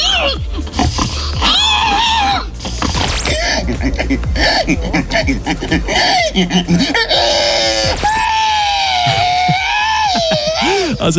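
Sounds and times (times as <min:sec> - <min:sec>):
people imitating pig squeals: 0:00.0 - 0:11.0
laughter: 0:09.9 - 0:11.0.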